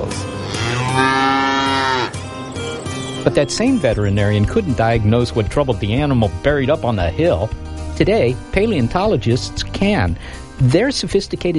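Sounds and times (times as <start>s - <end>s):
sick cow mooing in a low-pitched bellow: 0.3s - 2.2s
speech: 3.3s - 11.5s.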